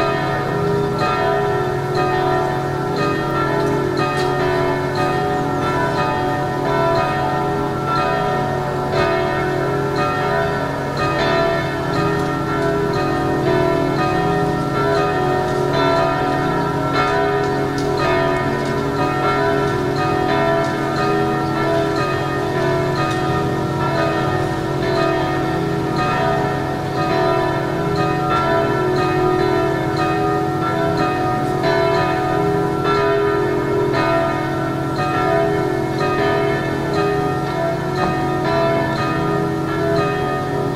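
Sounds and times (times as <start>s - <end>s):
full city bell ringing at a bell consecration: 0.0s - 40.7s.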